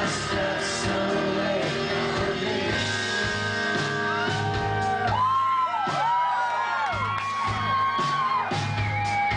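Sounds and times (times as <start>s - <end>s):
concert crowd singing along: 0.0s - 3.8s
live concert crowd cheering: 3.7s - 9.3s.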